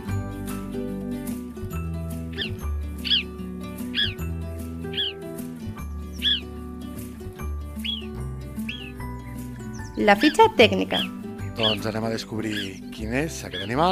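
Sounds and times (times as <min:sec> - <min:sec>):
background music: 0:00.0 - 0:13.9
alpine marmot whistles: 0:02.4 - 0:03.3, 0:04.0 - 0:04.2, 0:04.9 - 0:05.2, 0:06.1 - 0:06.5, 0:07.8 - 0:08.1, 0:08.7 - 0:09.0, 0:12.5 - 0:12.8, 0:13.5 - 0:13.8
speech: 0:10.0 - 0:13.9.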